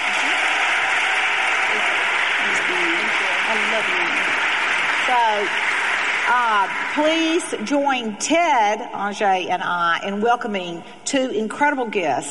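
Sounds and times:
audience applause for a guest: 0.0 - 7.7
speech: 3.8 - 4.4, 5.1 - 12.3.

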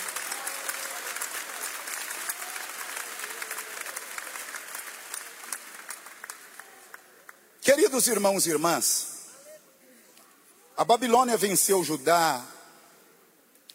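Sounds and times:
audience applause: 0.0 - 7.4
speech: 7.7 - 9.1, 10.8 - 12.5.

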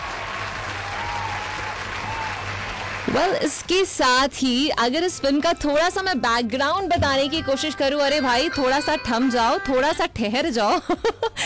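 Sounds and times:
applause for callers who answered a film quiz correctly: 0.0 - 3.5
speech: 3.1 - 11.4.

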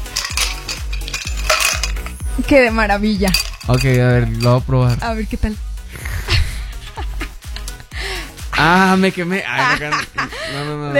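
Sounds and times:
ice cubes dropped into a glass: 0.0 - 2.2
speech: 2.4 - 5.7, 8.6 - 10.9
laughter: 6.2 - 10.9.

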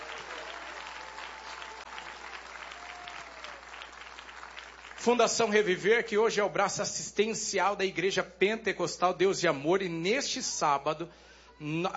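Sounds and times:
audience applauding: 0.0 - 5.9
speech: 5.0 - 11.9.

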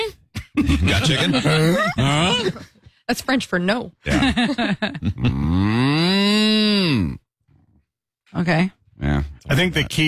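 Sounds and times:
speech: 0.0 - 5.9, 6.9 - 7.2, 8.3 - 10.0
laughter: 0.5 - 2.8, 4.1 - 5.4
person imitating a cow mooing: 5.3 - 7.2.

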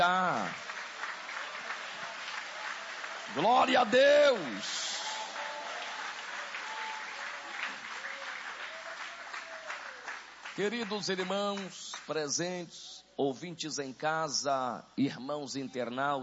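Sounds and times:
speech: 0.0 - 0.6, 3.3 - 4.9, 10.6 - 16.2
audience applause: 0.0 - 12.1.

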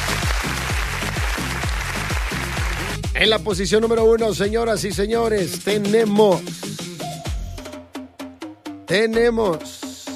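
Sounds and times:
applause: 0.0 - 3.2
rhythmic low bass beat: 0.0 - 5.5
speech: 3.2 - 6.6, 8.9 - 9.8.

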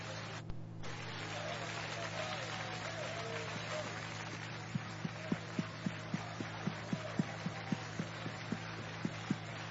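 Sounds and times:
audience clapping hands in rhythm: 0.0 - 9.6
constant low hum: 0.0 - 9.6
crowd noise: 0.0 - 9.6.

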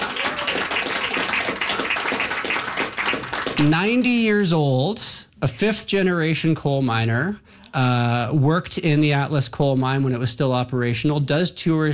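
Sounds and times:
audience round of applause: 0.0 - 3.9
speech: 3.6 - 11.9.

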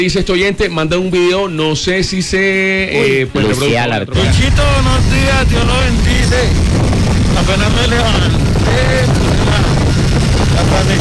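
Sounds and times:
speech: 0.0 - 6.6, 7.4 - 9.2, 10.6 - 10.9
voice: 2.8 - 6.6, 7.3 - 9.9
roaring wind buffeting a motorcyclist's helmet with visor: 4.1 - 10.9
low motorcycle engine rumble: 4.2 - 10.9.

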